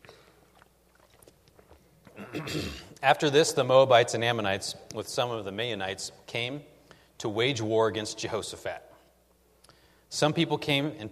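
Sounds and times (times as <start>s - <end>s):
person drinking water: 0.0s - 3.0s
speech: 2.4s - 8.9s, 10.1s - 11.1s.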